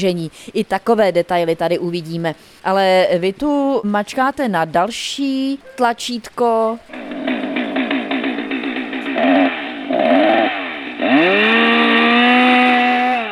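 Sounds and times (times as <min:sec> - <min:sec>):
speech: 0:00.0 - 0:07.1
chainsaw felling a tree: 0:06.9 - 0:13.2.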